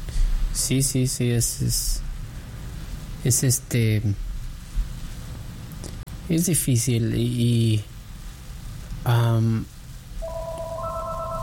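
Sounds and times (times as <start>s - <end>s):
speech: 0.6s - 2.1s, 3.2s - 4.3s, 6.3s - 7.9s, 9.0s - 9.7s
buzzy telephone tone on a radio phone-in line: 10.2s - 11.4s.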